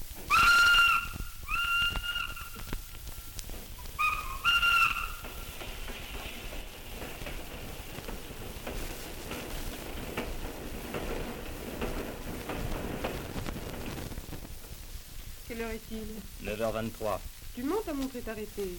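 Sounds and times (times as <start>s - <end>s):
train rumbling and hissing arriving at station: 0.0s - 18.7s
train whistle blasts: 0.3s - 3.4s, 4.0s - 5.3s
speech: 15.6s - 18.7s.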